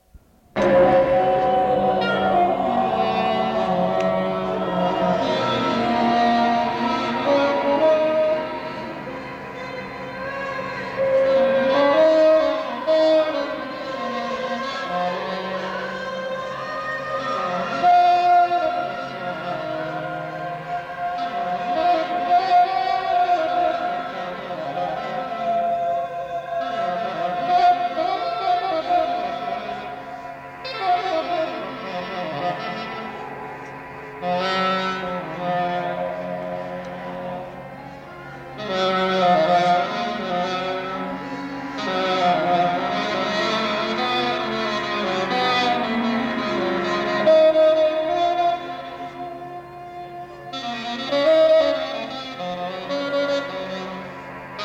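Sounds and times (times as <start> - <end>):
saxophone: 0.0 - 54.6.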